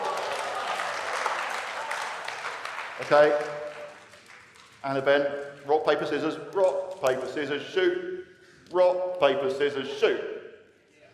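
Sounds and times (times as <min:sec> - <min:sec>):
audience applauding at a live game event: 0:00.0 - 0:05.2
speech: 0:03.0 - 0:03.7, 0:04.8 - 0:08.1, 0:08.7 - 0:10.3.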